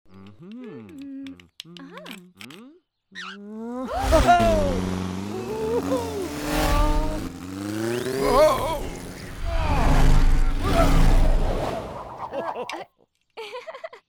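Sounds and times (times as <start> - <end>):
motorbike: 3.6 - 12.2
laughter: 3.8 - 7.1, 8.2 - 9.0, 12.1 - 14.0.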